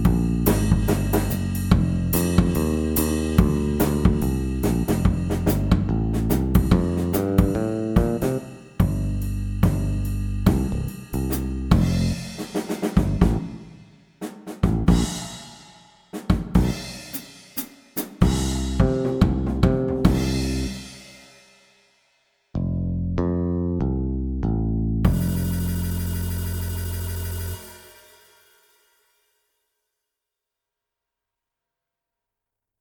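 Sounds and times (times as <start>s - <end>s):
bass: 0.0s - 13.7s, 14.6s - 15.4s, 16.5s - 17.2s, 18.2s - 21.2s, 22.5s - 28.0s
drums: 0.0s - 22.3s, 25.1s - 29.2s.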